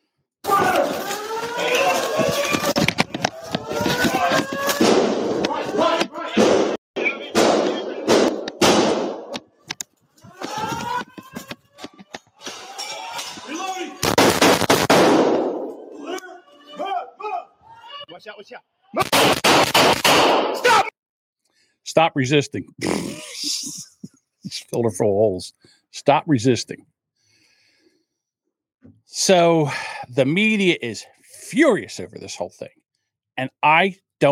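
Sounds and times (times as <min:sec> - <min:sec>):
people shouting: 0:00.4 - 0:07.8, 0:10.2 - 0:14.1, 0:15.8 - 0:19.4, 0:20.5 - 0:21.0
gunshots fired from a second-floor window at police: 0:00.6 - 0:09.4, 0:14.0 - 0:15.8, 0:19.0 - 0:20.7
speech: 0:22.1 - 0:23.8, 0:24.7 - 0:27.0, 0:28.8 - 0:32.8, 0:33.4 - 0:34.2.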